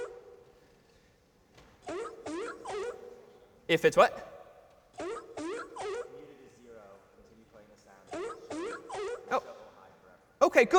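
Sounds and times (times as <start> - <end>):
sea lion barking: 1.8 - 6.4, 8.1 - 9.8
speech: 3.7 - 4.3, 10.6 - 10.7.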